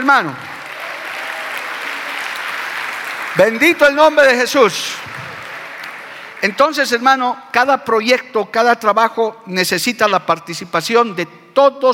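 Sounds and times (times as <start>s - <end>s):
audience applause: 0.0s - 6.8s
speech: 0.1s - 0.5s, 3.4s - 5.1s, 6.4s - 11.9s.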